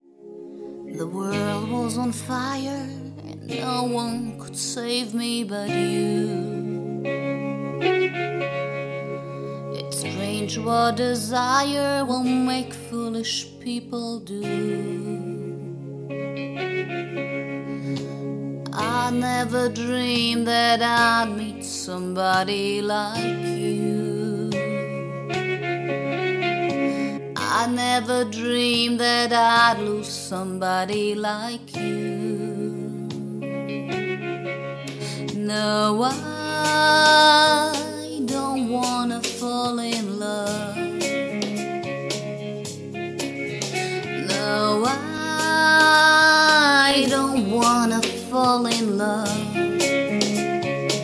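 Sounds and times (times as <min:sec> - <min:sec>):
person singing a ballad cover: 0:00.2 - 0:51.0.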